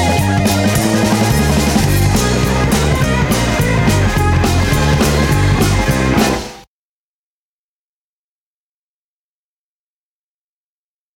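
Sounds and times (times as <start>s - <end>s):
boogie-woogie music: 0.0s - 6.7s.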